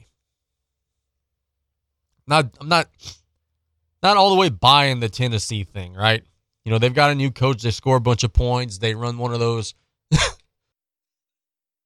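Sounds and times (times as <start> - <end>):
speech: 2.3 - 3.2, 4.0 - 10.4
person coughing: 10.1 - 10.5.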